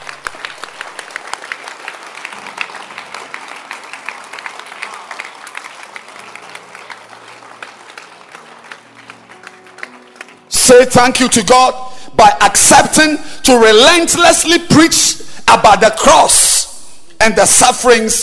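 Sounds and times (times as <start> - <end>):
audience clapping: 0.0 - 11.6
speech: 10.7 - 16.6, 17.2 - 18.2.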